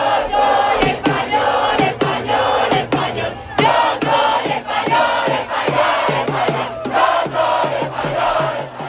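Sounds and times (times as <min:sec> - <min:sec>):
large crowd of football fans shouting, chanting and cheering outdoors: 0:00.0 - 0:08.8
sharp rhythmic claps or bangs: 0:00.3 - 0:08.8.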